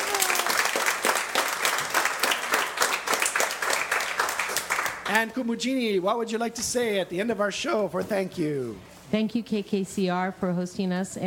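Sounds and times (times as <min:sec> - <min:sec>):
live audience applause: 0:00.0 - 0:05.3
speech: 0:05.1 - 0:11.2.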